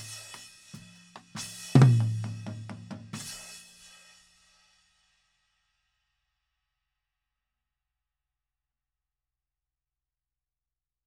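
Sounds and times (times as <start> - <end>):
tom drums: 0.0 - 3.6.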